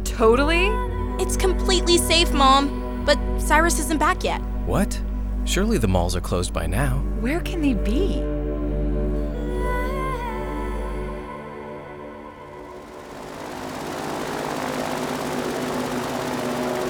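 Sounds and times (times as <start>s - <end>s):
boat engine droning: 0.0s - 16.8s
speech: 0.2s - 8.4s.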